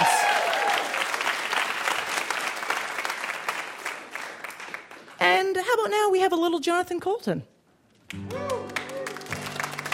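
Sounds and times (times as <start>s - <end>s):
audience applause: 0.0s - 5.2s, 8.1s - 9.9s
speech: 5.7s - 7.5s.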